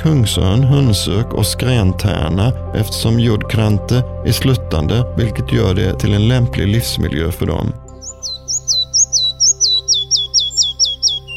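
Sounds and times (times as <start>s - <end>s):
speech: 0.0s - 7.8s
red-breasted flycatcher song: 7.8s - 11.3s.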